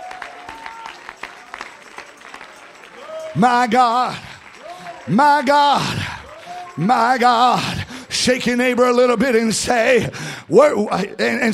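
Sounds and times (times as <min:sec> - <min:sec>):
audience clapping hands: 0:00.0 - 0:08.6
speech: 0:03.4 - 0:04.3, 0:05.0 - 0:06.0, 0:06.8 - 0:11.5.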